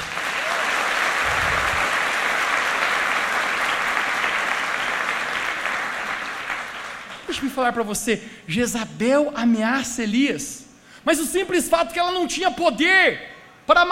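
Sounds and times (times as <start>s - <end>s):
audience applause: 0.0s - 7.4s
speech: 7.3s - 13.9s.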